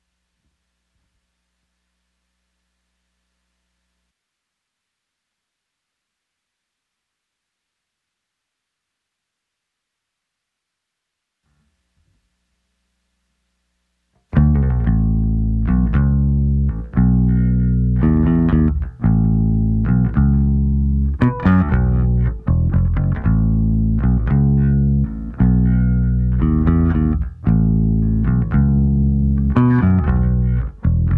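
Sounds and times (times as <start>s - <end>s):
bass: 13.9s - 31.1s.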